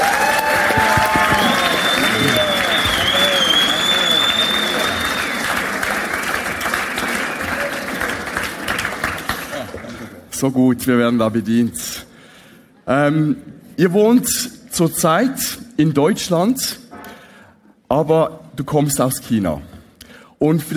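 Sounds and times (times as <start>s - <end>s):
audience applause: 0.0s - 10.2s
speech: 10.4s - 12.0s, 12.8s - 16.8s, 17.9s - 19.7s, 20.4s - 20.7s.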